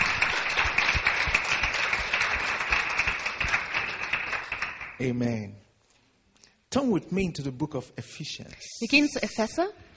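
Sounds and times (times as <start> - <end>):
audience applause: 0.0 - 5.0
speech: 5.0 - 5.6, 6.7 - 9.9.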